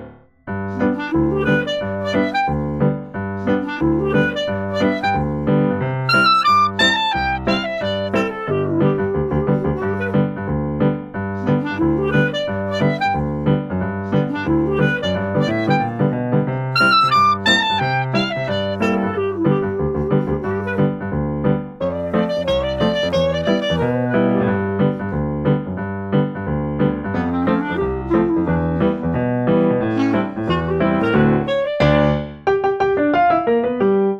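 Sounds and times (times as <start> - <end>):
happy clarinet ragtime: 0.5 - 25.8, 27.0 - 34.1.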